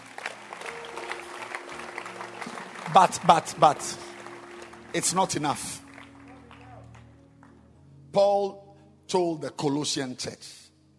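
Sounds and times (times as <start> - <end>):
audience clapping hands: 0.0 - 7.6
speech: 2.9 - 4.0, 4.9 - 5.8, 8.2 - 10.6.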